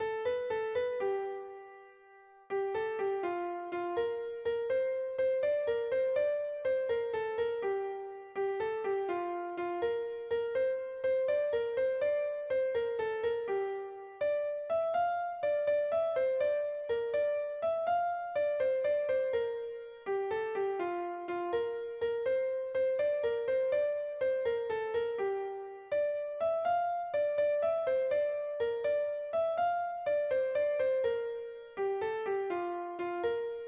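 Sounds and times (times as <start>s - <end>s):
piano: 0.0s - 33.6s.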